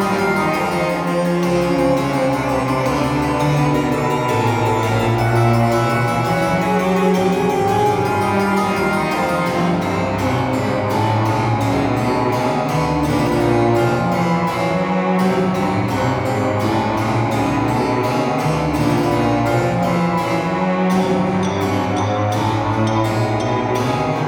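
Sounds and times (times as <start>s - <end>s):
haunted harpsichord: 0.0s - 24.2s.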